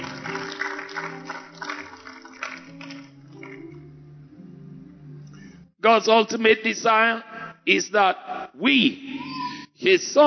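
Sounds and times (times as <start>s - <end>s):
audience clapping: 0.0s - 3.8s
speech: 5.8s - 9.2s, 9.8s - 10.2s.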